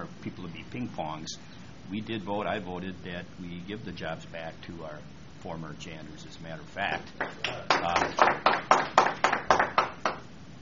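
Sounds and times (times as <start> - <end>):
speech: 0.2 - 9.3
audience applause: 7.2 - 10.2.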